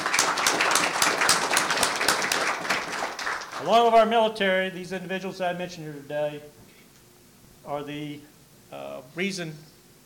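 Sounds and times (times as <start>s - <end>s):
audience applause: 0.0s - 4.0s
speech: 3.6s - 6.6s, 7.6s - 9.7s.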